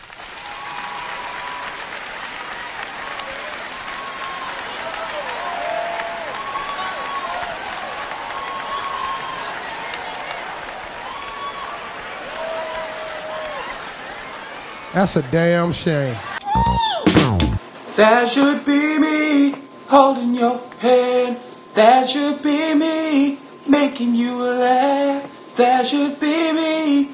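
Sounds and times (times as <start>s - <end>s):
large audience applauding: 0.0s - 17.6s
speech: 15.0s - 16.7s, 18.0s - 27.0s.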